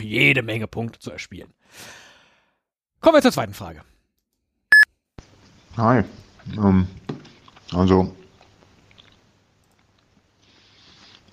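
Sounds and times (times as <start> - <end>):
speech: 0.0 - 2.0, 3.0 - 4.0, 5.8 - 7.0, 7.7 - 8.2
chewing peanut butter toast: 6.2 - 11.3.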